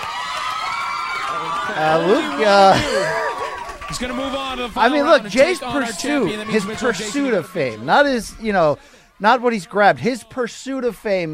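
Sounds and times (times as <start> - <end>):
crowd cheering and whooping: 0.0 - 11.3
laughter: 1.1 - 10.4
speech: 1.3 - 3.2, 3.9 - 11.3.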